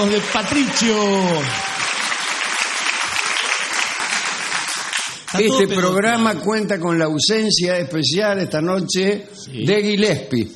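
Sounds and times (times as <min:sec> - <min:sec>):
speech: 0:00.0 - 0:01.8, 0:05.3 - 0:10.5
audience applause: 0:00.0 - 0:05.8.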